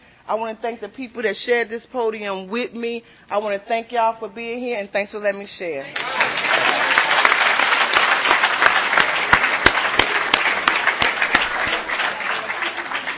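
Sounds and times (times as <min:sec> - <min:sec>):
speech: 0:00.3 - 0:06.2
audience applause at a convention: 0:05.9 - 0:13.1.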